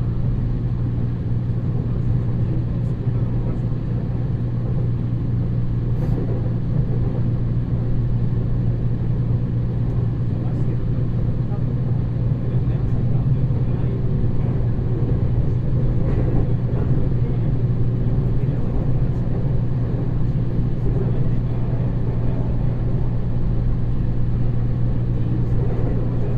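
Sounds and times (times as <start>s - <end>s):
train interior noise: 0.0s - 26.3s.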